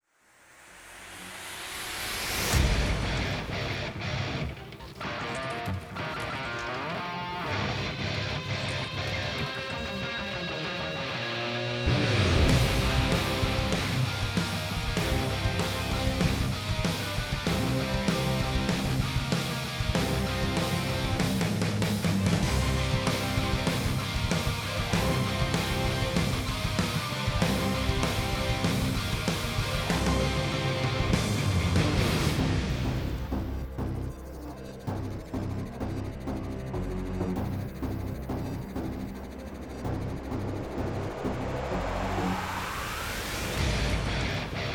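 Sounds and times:
light suspense music: 0:00.6 - 0:44.7.

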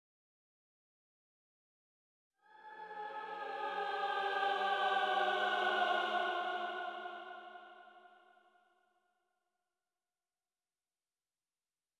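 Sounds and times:
choir singing: 0:02.4 - 0:08.4.

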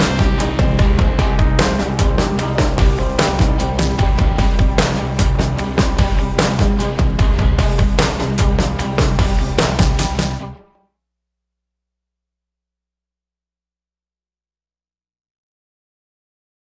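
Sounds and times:
industrial pre-race music at 75 bpm: 0:00.0 - 0:10.7.

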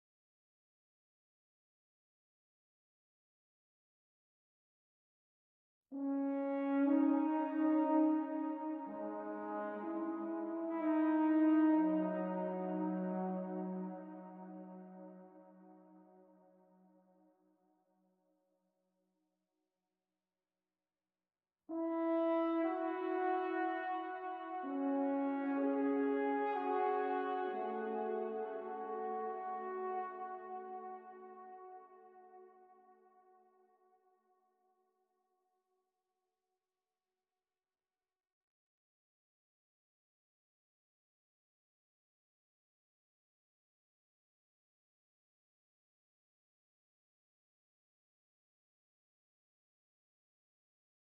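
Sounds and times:
horn: 0:05.9 - 0:16.3, 0:21.7 - 0:33.1.

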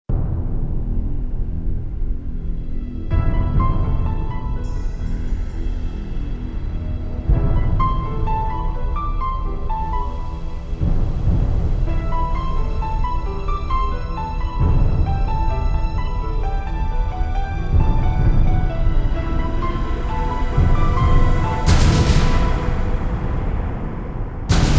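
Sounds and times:
background music: 0:00.1 - 0:24.7.

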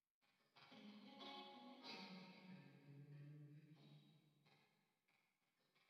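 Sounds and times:
guitar with heavy reverb: 0:00.6 - 0:04.1.

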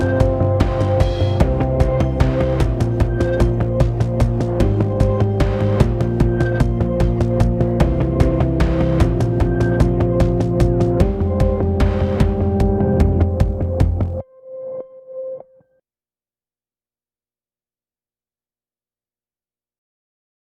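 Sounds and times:
industrial post-race music: 0:00.0 - 0:14.2.

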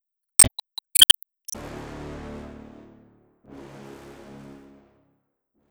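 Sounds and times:
music loop: 0:00.4 - 0:01.5.

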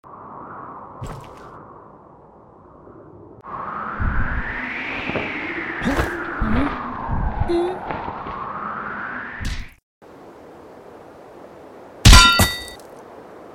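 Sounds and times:
parachute: 0:00.1 - 0:09.8.

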